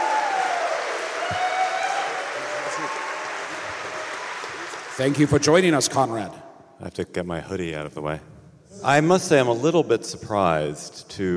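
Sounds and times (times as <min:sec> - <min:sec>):
people whooping: 0:00.0 - 0:04.9
crowd applauding: 0:00.0 - 0:05.8
speech: 0:05.0 - 0:11.3.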